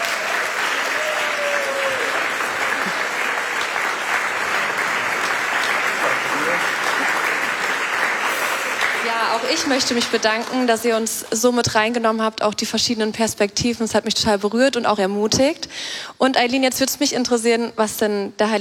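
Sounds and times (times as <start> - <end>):
audience applause: 0.0 - 11.1
speech: 9.4 - 18.5.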